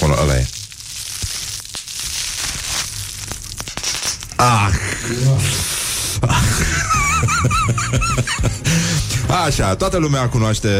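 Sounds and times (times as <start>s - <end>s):
bubble wrap being popped: 0.0s - 5.1s
speech: 4.4s - 6.4s, 7.4s - 8.4s, 9.4s - 10.7s
laughter: 6.2s - 9.3s.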